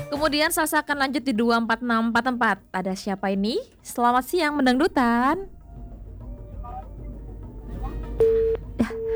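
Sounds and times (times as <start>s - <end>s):
speech: 0.3s - 5.6s
low line hum: 4.9s - 9.1s
phone busy tone after a radio call-in line disconnects: 5.7s - 9.1s.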